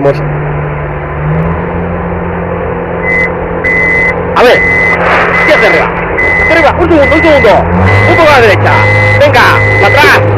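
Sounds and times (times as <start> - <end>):
speech: 0.0 - 0.4, 4.4 - 10.3
crane diesel engine droning: 0.0 - 10.3
crane high warning beeps: 3.0 - 10.3.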